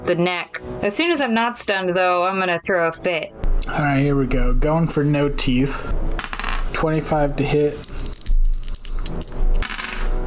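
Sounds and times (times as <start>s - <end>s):
speech: 0.0s - 6.2s, 6.8s - 7.9s
dice rolling on a hard table: 6.2s - 7.0s, 7.6s - 10.2s.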